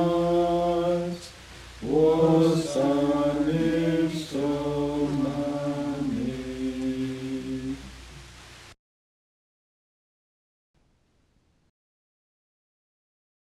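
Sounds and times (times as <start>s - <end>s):
hymn singing from a hymnbook: 0.0s - 8.4s.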